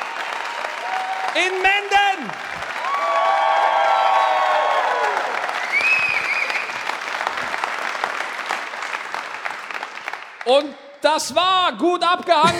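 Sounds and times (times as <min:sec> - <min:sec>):
audience applause: 0:00.0 - 0:10.7
speech: 0:01.4 - 0:02.5, 0:10.5 - 0:12.5.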